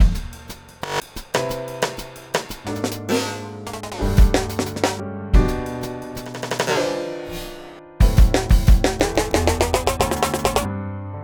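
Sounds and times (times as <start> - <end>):
music beat: 0.0 - 10.7.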